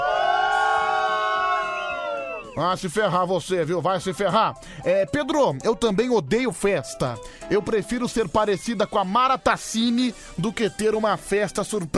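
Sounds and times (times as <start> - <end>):
crowd booing: 0.0 - 2.6
speech: 2.6 - 11.9.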